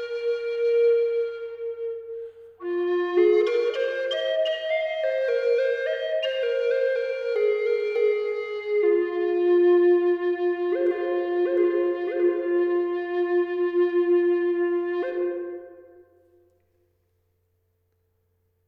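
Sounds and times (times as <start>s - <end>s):
maple flute in low F sharp tuned to 432 Hz: 0.0s - 16.4s.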